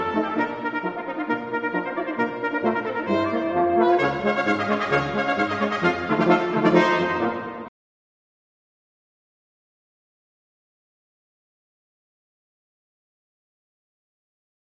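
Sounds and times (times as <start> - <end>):
brass chamber quintet playing: 0.0 - 7.7.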